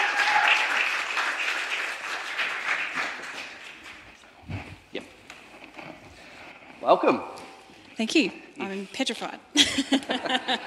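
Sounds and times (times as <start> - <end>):
audience applause: 0.0 - 4.2
speech: 6.8 - 7.3, 8.0 - 10.6
laughter: 9.6 - 10.6.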